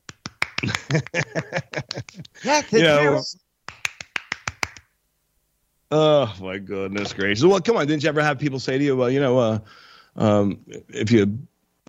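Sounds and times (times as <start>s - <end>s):
clapping: 0.1s - 1.3s, 3.7s - 4.9s
laughter: 0.6s - 3.2s
speech: 0.6s - 3.4s, 5.9s - 11.8s.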